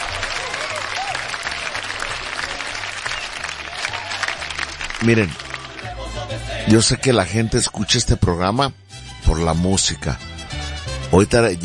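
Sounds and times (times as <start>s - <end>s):
applause: 0.0s - 6.2s
speech: 5.0s - 5.4s, 6.6s - 10.3s, 11.2s - 11.6s.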